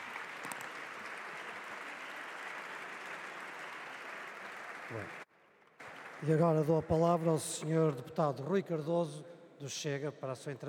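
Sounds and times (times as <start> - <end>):
applause in parliament chamber: 0.0 - 8.0
speech: 4.9 - 5.2, 6.2 - 10.6.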